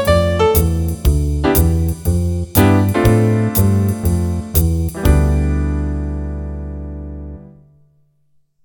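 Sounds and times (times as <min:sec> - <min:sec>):
jazz improvisation in D minor: 0:00.0 - 0:07.6.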